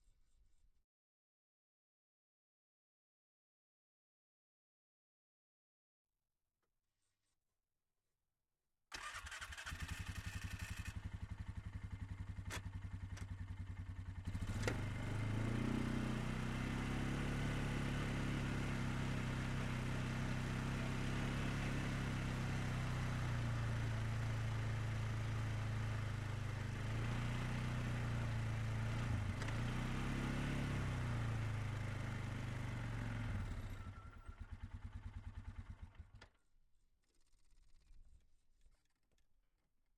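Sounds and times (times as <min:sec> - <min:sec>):
2006 Polaris Sportsman 500 ATV engine and transmission driving, onboard: 0:09.0 - 0:36.3.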